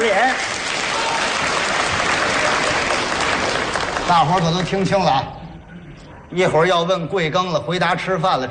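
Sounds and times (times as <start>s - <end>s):
audience applause: 0.0s - 5.0s
speech: 4.1s - 5.4s, 6.3s - 8.4s.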